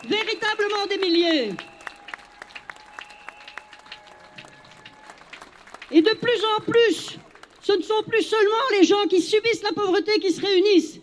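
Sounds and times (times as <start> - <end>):
speech: 0.0 - 1.7, 5.9 - 11.0
audience applauding: 0.0 - 7.6.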